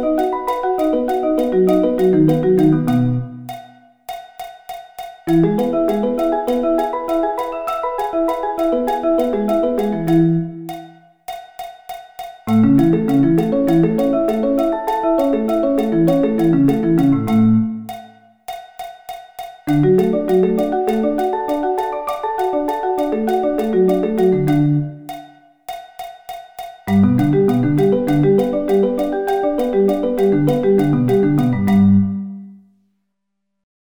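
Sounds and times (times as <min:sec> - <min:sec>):
arpeggio inversions: 0:00.0 - 0:03.5, 0:05.3 - 0:10.7, 0:12.5 - 0:17.8, 0:19.7 - 0:25.0, 0:26.9 - 0:32.2.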